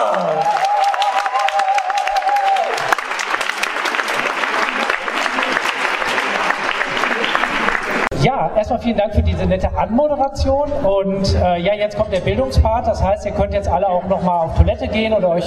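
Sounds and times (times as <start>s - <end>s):
audience applause: 0.0s - 8.1s
speech: 8.6s - 15.4s.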